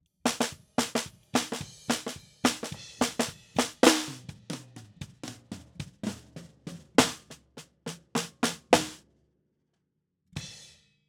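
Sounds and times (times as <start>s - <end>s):
snare drum: 0.3s - 9.0s.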